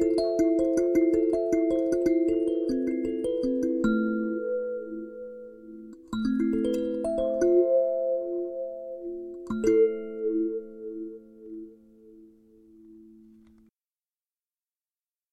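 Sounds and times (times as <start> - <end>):
sansula kalimba playing: 0.0 - 11.8.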